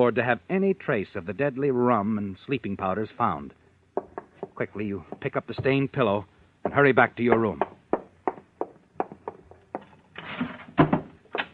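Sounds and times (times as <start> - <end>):
speech: 0.0 - 3.6, 4.6 - 7.7
wooden drawer scraping and sliding shut: 10.2 - 11.5.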